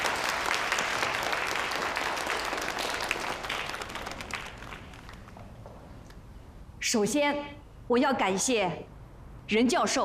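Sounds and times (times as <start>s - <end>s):
audience applause: 0.0s - 5.4s
speech: 6.9s - 8.9s, 9.5s - 10.0s.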